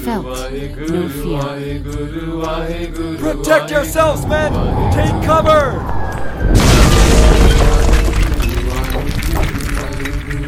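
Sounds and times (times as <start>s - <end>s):
speech: 0.0s - 6.6s
huge boulder slamming into the ground: 6.3s - 10.4s.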